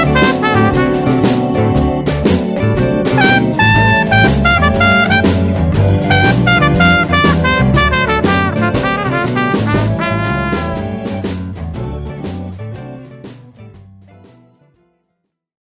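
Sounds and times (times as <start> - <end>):
blues solo trumpet in D at 120 BPM: 0.0 - 2.4, 3.0 - 11.4.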